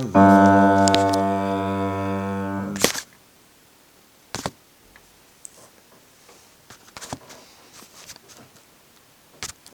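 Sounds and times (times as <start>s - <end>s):
bass instruments: 0.1s - 2.9s.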